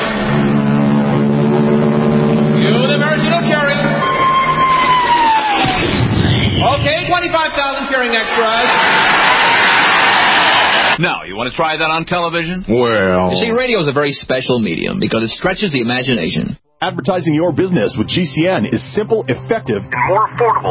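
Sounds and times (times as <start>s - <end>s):
horn-like tones: 0.2s - 5.9s
huge crowd cheering: 3.7s - 11.0s
gliding whistle: 3.8s - 5.9s
speech: 11.0s - 20.6s.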